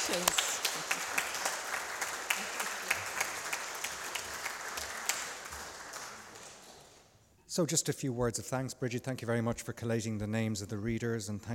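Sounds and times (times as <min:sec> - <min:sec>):
audience applause: 0:00.0 - 0:07.0
speech: 0:07.6 - 0:11.5.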